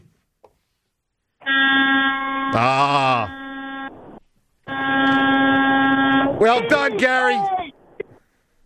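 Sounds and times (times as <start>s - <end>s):
horn blast: 1.4s - 3.9s, 4.7s - 6.6s
speech: 2.5s - 3.4s, 6.4s - 7.6s.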